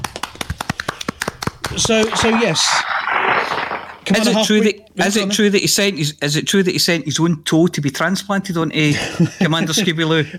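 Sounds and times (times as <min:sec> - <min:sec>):
applause: 0:00.0 - 0:02.5
speech: 0:01.8 - 0:02.9, 0:04.1 - 0:10.3.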